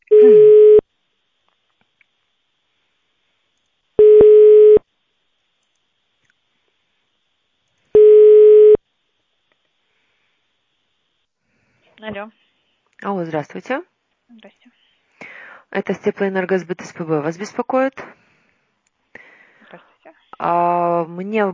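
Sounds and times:
telephone ringback tones while a call is transferred: 0.1 - 0.8, 4.0 - 4.8, 8.0 - 8.8
speech: 12.1 - 12.4, 13.0 - 14.8, 15.7 - 18.2, 19.7 - 21.5.

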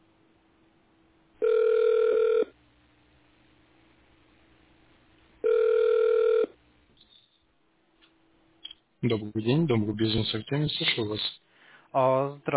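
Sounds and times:
telephone ringback tone while waiting for operator: 1.4 - 2.5, 5.4 - 6.5
speech: 9.0 - 12.5.

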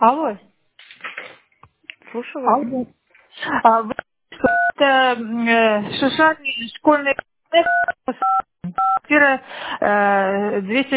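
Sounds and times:
speech: 0.0 - 0.5, 2.1 - 10.9
telephone keypad DTMF tones during a phone call: 4.4 - 4.8, 7.6 - 9.0.

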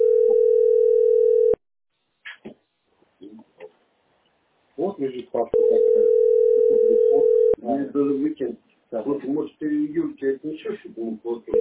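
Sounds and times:
telephone signal from automated robocall: 0.0 - 1.6, 5.6 - 7.6
speech: 5.0 - 11.5.

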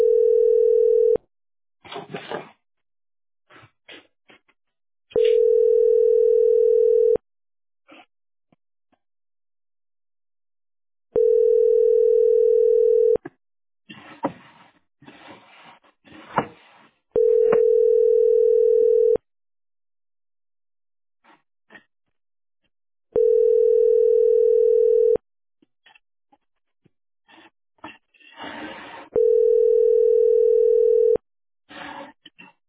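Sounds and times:
telephone line tones while a call is being placed: 0.0 - 1.2, 5.2 - 7.2, 11.2 - 13.2, 17.2 - 19.2, 23.2 - 25.2, 29.2 - 31.2.

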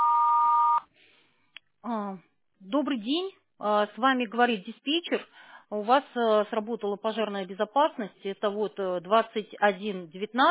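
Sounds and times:
voicemail beep signal: 0.0 - 0.8
speech: 2.7 - 10.4.

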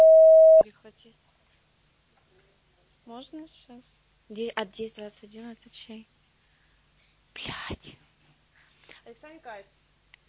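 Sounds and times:
Russian voicemail recording beep: 0.0 - 0.6
speech: 3.2 - 6.2, 7.4 - 8.0, 9.1 - 9.8.

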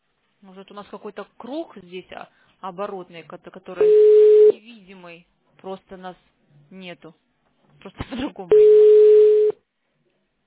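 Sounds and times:
speech: 0.4 - 7.2, 7.8 - 9.2
telephone ringing tone on an unanswered call: 3.8 - 4.6, 8.5 - 9.6.

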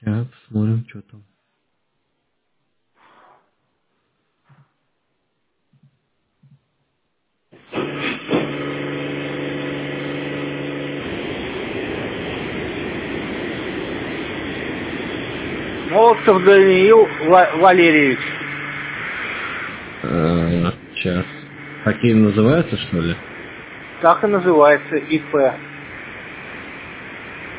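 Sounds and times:
speech: 0.0 - 1.4, 16.3 - 18.3, 21.8 - 23.3, 24.0 - 25.7
car wash machinery: 7.6 - 27.5.

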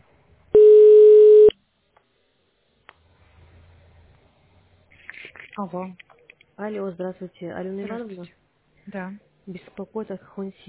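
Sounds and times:
ringback tone on a telephone line while waiting to connect: 0.6 - 1.5
speech: 5.6 - 10.6.

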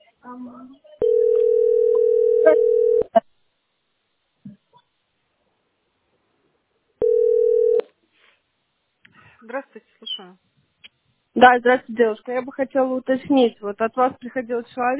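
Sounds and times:
speech: 0.2 - 1.0, 2.4 - 3.0, 9.6 - 10.5, 11.4 - 14.9
telephone ringback tone while calling: 1.0 - 3.1, 7.0 - 7.8.

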